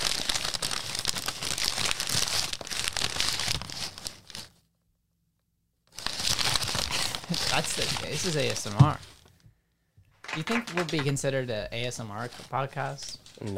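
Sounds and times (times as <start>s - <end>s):
crinkling of a bag holding three candles: 0.0s - 4.6s, 5.9s - 9.4s
speech: 7.6s - 9.1s, 10.4s - 13.5s.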